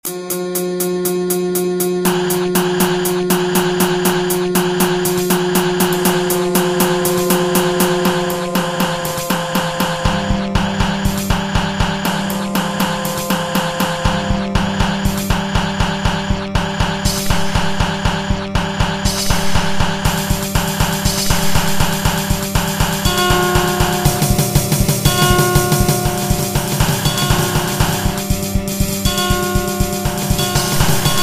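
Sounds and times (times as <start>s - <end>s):
horror music: 1.0s - 31.2s.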